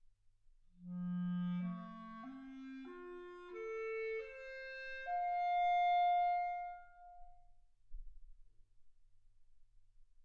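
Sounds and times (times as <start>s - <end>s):
clarinet: 0.8s - 7.5s.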